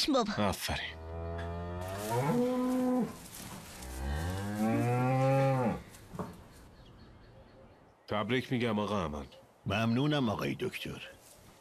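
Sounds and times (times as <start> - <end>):
speech: 0.0 - 1.0, 8.1 - 11.2
calf mooing on a farm: 1.0 - 3.2, 3.8 - 5.8.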